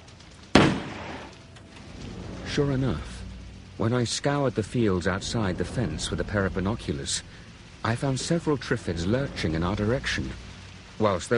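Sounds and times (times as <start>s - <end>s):
gunshot: 0.5s - 1.3s
speech: 2.6s - 3.1s, 3.8s - 10.4s, 11.0s - 11.3s.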